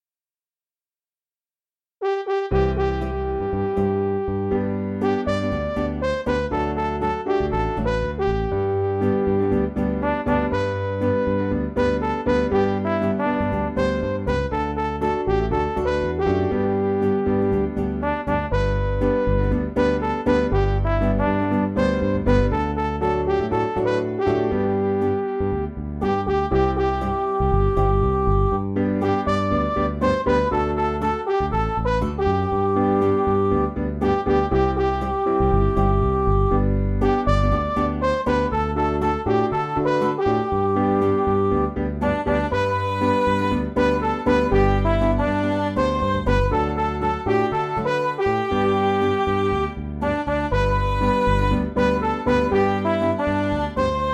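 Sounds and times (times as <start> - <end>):
midi music: 2.0 - 54.1.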